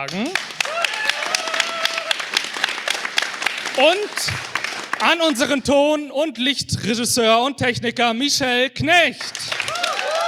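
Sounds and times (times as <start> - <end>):
speech: 0.0 - 0.5, 3.8 - 9.6
audience applause: 0.0 - 5.7, 9.2 - 10.2.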